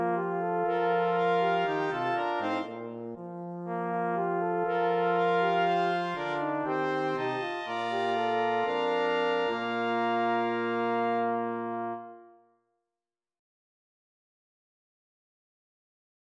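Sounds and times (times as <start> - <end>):
brass ensemble playing an intrada: 0.0 - 12.4.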